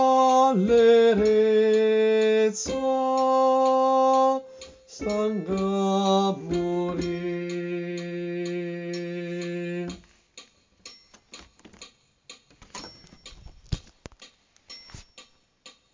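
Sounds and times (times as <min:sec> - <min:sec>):
sopranos singing: 0:00.0 - 0:10.0.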